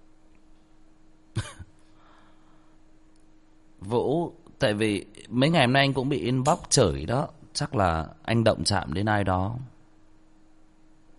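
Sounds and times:
coughing: 0:01.3 - 0:01.8
speech: 0:03.8 - 0:09.7.

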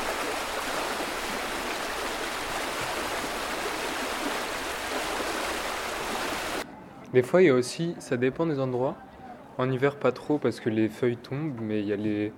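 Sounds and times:
rain falling: 0:00.0 - 0:06.6
speech: 0:07.1 - 0:12.3.

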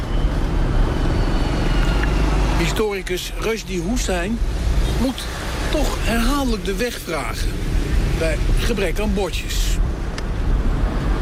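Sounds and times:
heavy street traffic of many mopeds in a village: 0:00.0 - 0:11.1
speech: 0:02.6 - 0:09.9.

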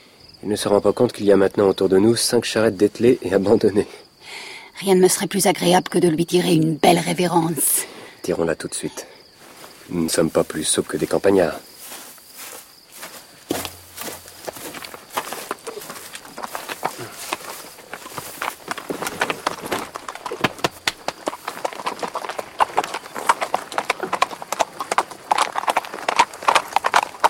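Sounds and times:
speech: 0:00.4 - 0:09.1, 0:09.9 - 0:11.7
horse hooves clip-clopping in a walking rhythm: 0:11.8 - 0:27.2.

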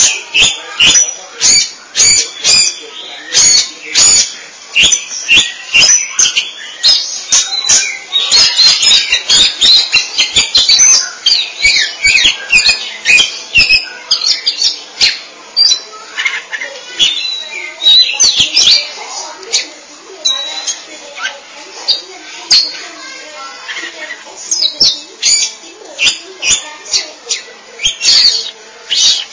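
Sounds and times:
Oriental magpie-robin song: 0:00.0 - 0:29.3.

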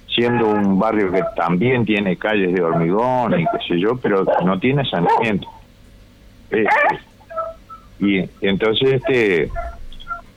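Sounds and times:
dogs barking and yelping: 0:00.2 - 0:01.7, 0:02.3 - 0:05.7, 0:06.5 - 0:08.0, 0:08.7 - 0:10.3
speech: 0:00.2 - 0:05.6, 0:06.5 - 0:07.1, 0:08.0 - 0:09.8.

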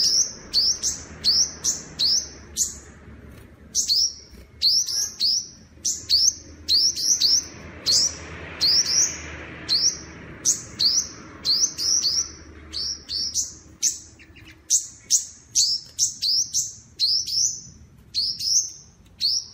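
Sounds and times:
bird song of sharp chirps: 0:00.0 - 0:19.5.

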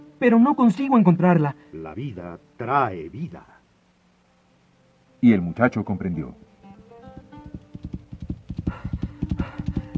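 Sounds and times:
speech: 0:00.2 - 0:03.5, 0:05.2 - 0:06.4
horse hooves clip-clopping on stony desert ground: 0:07.2 - 0:09.9.

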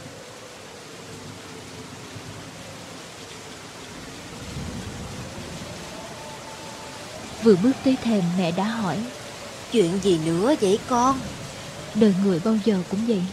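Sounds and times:
heavy rain: 0:00.0 - 0:13.3
thunder rumbling: 0:03.8 - 0:13.3
speech: 0:07.4 - 0:11.4, 0:12.0 - 0:13.3.

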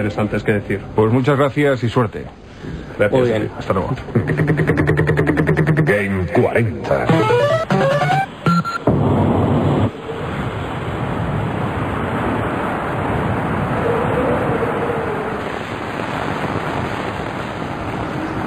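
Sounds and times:
speech: 0:00.0 - 0:07.7
arcade video game music: 0:07.1 - 0:08.8
rain: 0:09.1 - 0:18.4.

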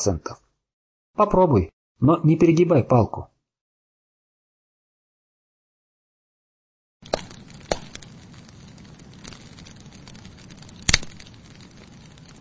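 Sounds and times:
speech: 0:00.0 - 0:00.4, 0:01.2 - 0:03.3
campfire crackling: 0:07.0 - 0:12.4.

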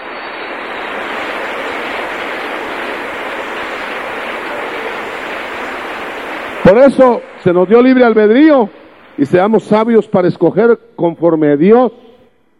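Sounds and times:
audience applause: 0:00.0 - 0:07.2
speech: 0:06.7 - 0:12.1.

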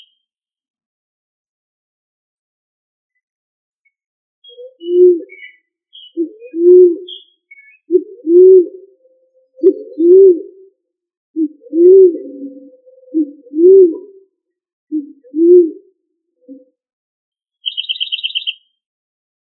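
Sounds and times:
pigeon or dove cooing: 0:04.5 - 0:05.5, 0:06.2 - 0:10.8, 0:11.4 - 0:14.2, 0:14.9 - 0:16.7.

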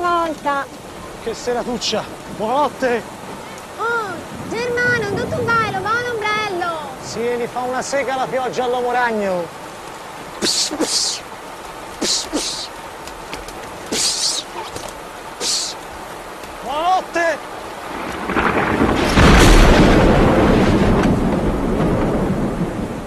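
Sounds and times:
speech: 0:00.3 - 0:03.2, 0:07.1 - 0:09.6, 0:10.4 - 0:11.3, 0:16.7 - 0:17.5
thunderclap: 0:04.2 - 0:07.2, 0:17.8 - 0:23.0
lightning strike: 0:17.9 - 0:23.0.

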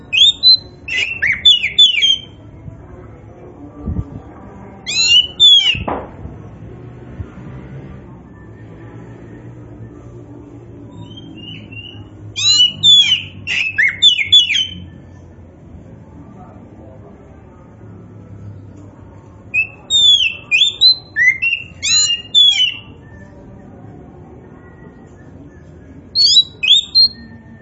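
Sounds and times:
Oriental magpie-robin singing: 0:00.0 - 0:02.4, 0:04.9 - 0:05.9, 0:10.9 - 0:15.2, 0:19.5 - 0:23.5, 0:25.0 - 0:27.6.

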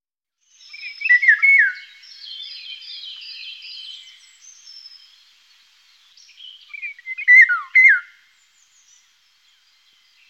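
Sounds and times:
Eurasian golden oriole fluty yodelling whistle: 0:00.7 - 0:04.2, 0:06.7 - 0:08.2.

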